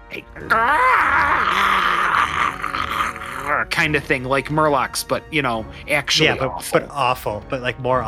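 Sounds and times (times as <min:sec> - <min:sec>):
speech: 0:00.1 - 0:01.8, 0:03.5 - 0:08.0
voice imitating gurgling unholy monster screech: 0:00.1 - 0:03.8.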